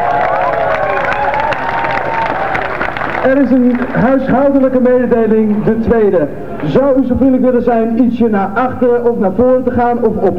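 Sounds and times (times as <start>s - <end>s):
audience applause: 0.0s - 4.8s
speech: 3.2s - 10.3s.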